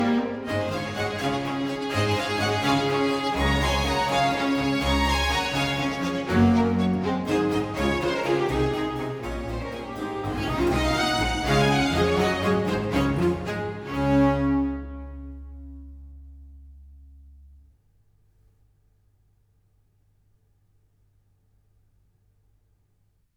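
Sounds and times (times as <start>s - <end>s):
strings: 0.0s - 17.4s
basso continuo: 0.0s - 17.8s.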